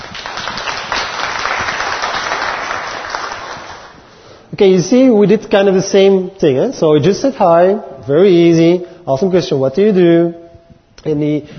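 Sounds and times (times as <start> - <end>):
audience applause: 0.0 - 4.0
speech: 4.6 - 10.4, 11.0 - 11.5.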